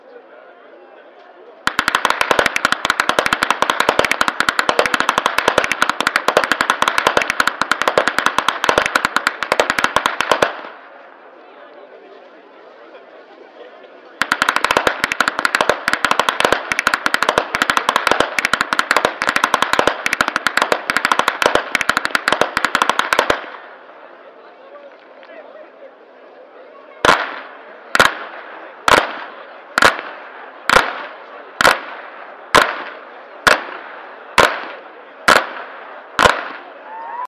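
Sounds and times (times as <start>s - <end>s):
whip cracking in Flachgau: 1.7s - 10.8s, 14.2s - 23.6s, 27.0s - 36.7s
laughter: 11.5s - 14.2s.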